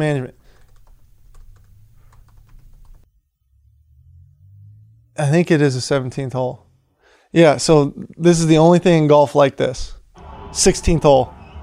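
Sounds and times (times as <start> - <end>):
speech: 0.0 - 0.4, 5.2 - 6.6, 7.3 - 11.4
typing a search on a computer keyboard: 0.5 - 3.1
low hum: 1.1 - 5.3, 10.2 - 11.6.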